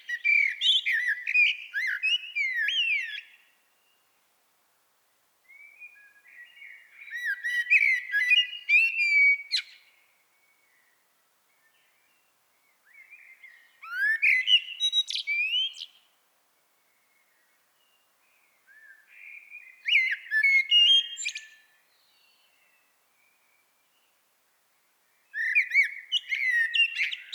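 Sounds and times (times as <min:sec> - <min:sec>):
common blackbird singing: 0:00.0 - 0:03.5, 0:05.5 - 0:09.9, 0:12.8 - 0:16.1, 0:18.7 - 0:23.6, 0:25.2 - 0:27.3.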